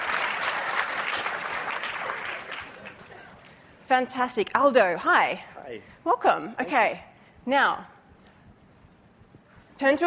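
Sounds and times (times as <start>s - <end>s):
audience applause: 0.0s - 3.4s
speech: 3.9s - 7.9s, 9.8s - 10.0s.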